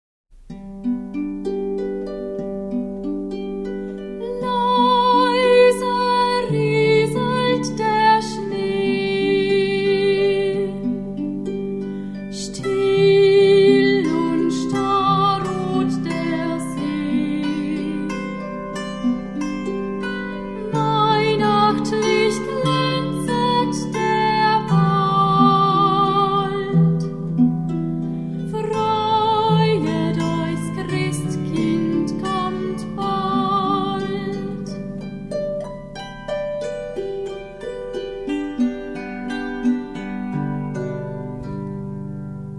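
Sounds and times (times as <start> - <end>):
Christmas melodies: 0.4 - 42.5.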